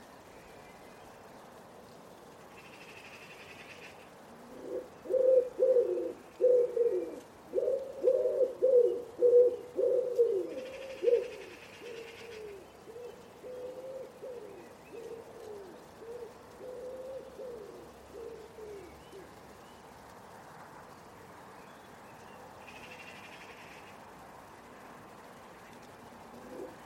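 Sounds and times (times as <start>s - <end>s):
Common Wood Pigeon cooing: 2.9s - 19.4s, 26.2s - 26.8s.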